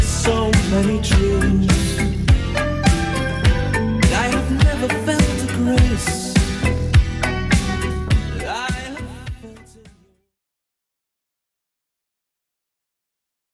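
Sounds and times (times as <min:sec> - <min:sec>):
80s drum machine beat at 103 bpm: 0:00.0 - 0:10.1.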